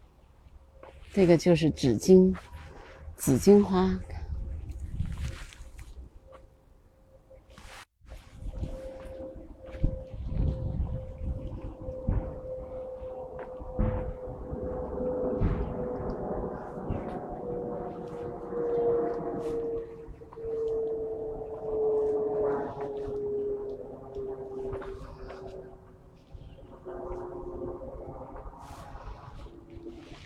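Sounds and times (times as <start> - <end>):
airplane flying overhead: 0.0 - 30.2
speech: 1.1 - 2.5, 3.2 - 4.1.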